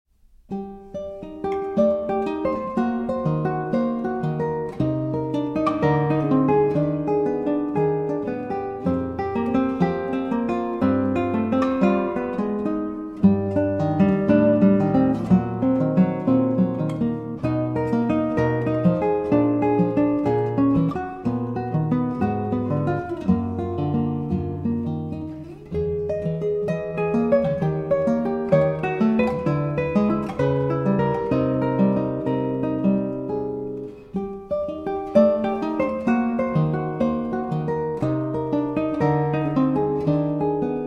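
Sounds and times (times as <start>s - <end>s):
guitar: 0.1s - 40.8s.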